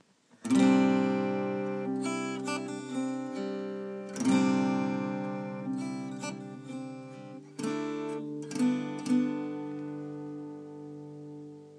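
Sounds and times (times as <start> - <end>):
stringed instrument in DGCGCD tuning: 0.5 - 9.9.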